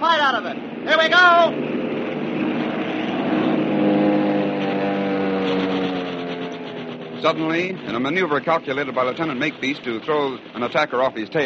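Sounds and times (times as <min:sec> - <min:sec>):
warplanes roaring and diving: 0:00.0 - 0:11.4
speech: 0:00.1 - 0:01.8, 0:07.2 - 0:11.4
machine guns chattering: 0:04.8 - 0:11.4.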